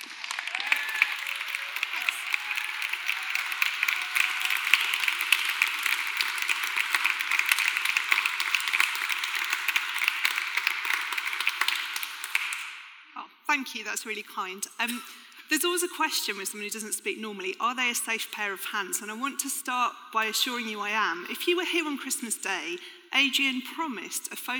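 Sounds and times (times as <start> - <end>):
audience applause: 0.0 - 12.7
speech: 13.5 - 24.5.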